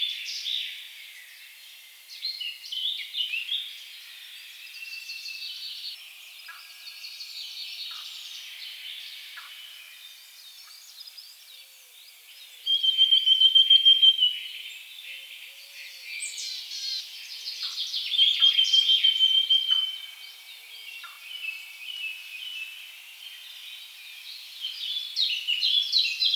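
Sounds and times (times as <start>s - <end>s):
Eurasian blackcap song: 7.4s - 26.3s.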